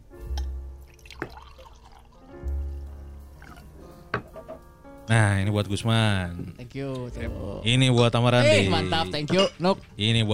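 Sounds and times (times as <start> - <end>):
drinks being poured into glasses: 0.9 - 2.3, 3.3 - 4.2
speech: 5.1 - 10.3.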